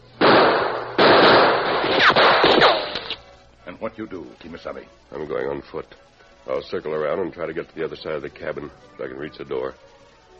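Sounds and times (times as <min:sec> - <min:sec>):
gunshots exchanged: 0:00.2 - 0:03.2
speech: 0:03.8 - 0:09.9.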